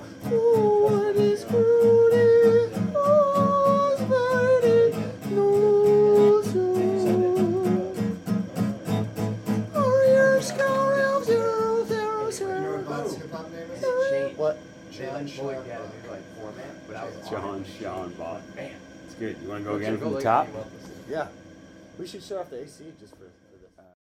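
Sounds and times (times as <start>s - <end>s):
hip hop rehearsal: 0.0s - 17.7s.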